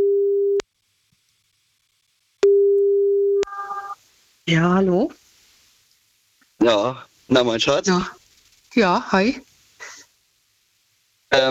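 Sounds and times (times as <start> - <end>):
telephone ringback tone while calling someone: 2.4 - 4.0
speech: 4.5 - 5.2, 6.6 - 9.5.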